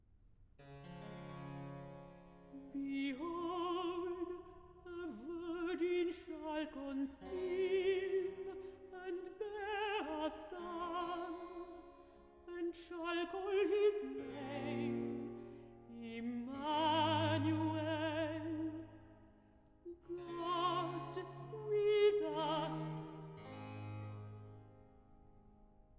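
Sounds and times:
person singing recitative: 0:02.6 - 0:11.9, 0:12.5 - 0:19.0, 0:19.8 - 0:23.4.

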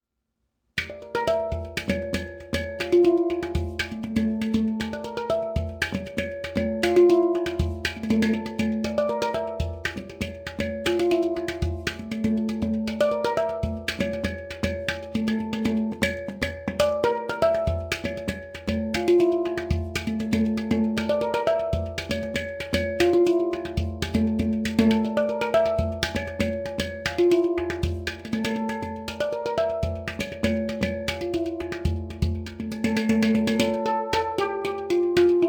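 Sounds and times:
hang drum: 0:00.8 - 0:35.4.

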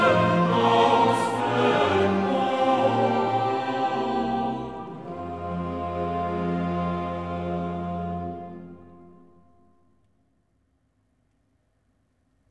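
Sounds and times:
chorale: 0:00.0 - 0:09.9.

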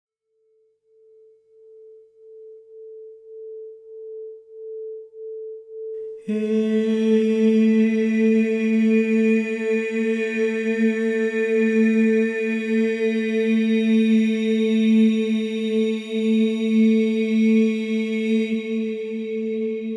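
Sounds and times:
overtone singing: 0:06.2 - 0:19.8.

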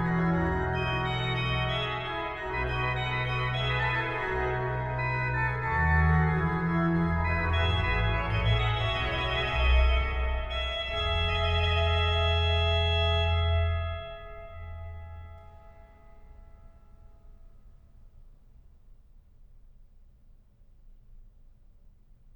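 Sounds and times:
organ playing: 0:00.0 - 0:15.8.

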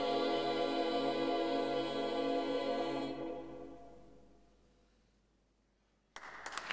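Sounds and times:
female choir singing world music: 0:00.0 - 0:04.2.

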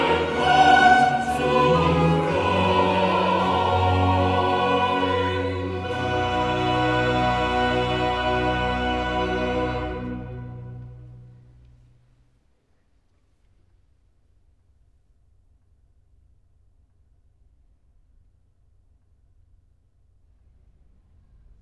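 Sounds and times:
choir singing: 0:00.0 - 0:11.4.

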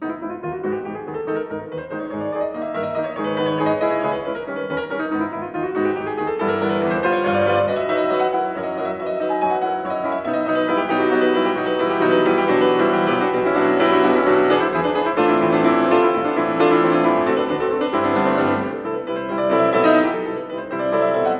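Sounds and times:
piano prelude: 0:00.0 - 0:21.3.

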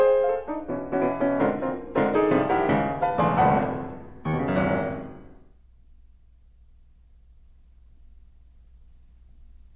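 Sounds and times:
piano sonata scherzo: 0:00.0 - 0:05.6.

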